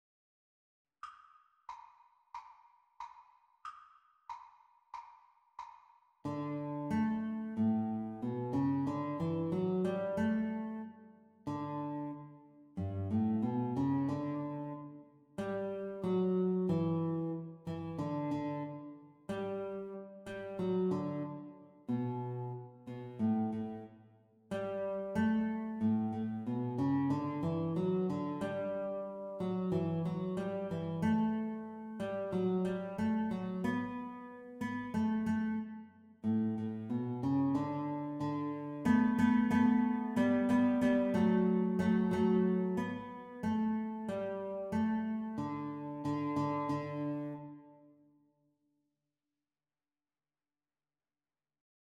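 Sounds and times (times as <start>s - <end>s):
guitar duet playalong: 6.3s - 23.9s, 24.5s - 47.8s.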